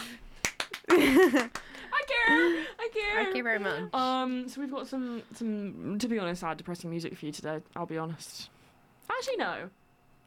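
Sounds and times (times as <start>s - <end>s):
hand claps: 0.0s - 2.2s
laughter: 0.8s - 4.0s
speech: 1.2s - 1.6s, 2.2s - 9.8s.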